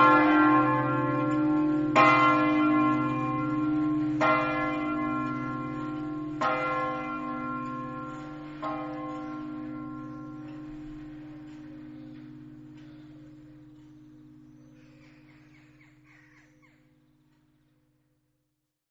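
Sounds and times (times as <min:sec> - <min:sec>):
bells ringing: 0:00.0 - 0:15.0.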